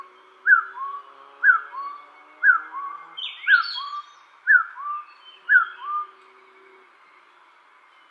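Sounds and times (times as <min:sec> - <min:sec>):
Taiwan hill partridge calling: 0:02.4 - 0:06.1.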